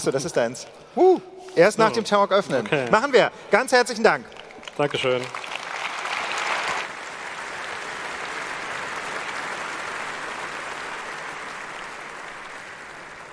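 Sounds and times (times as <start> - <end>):
speech: 0.0 - 5.4
audience applause: 3.8 - 13.3.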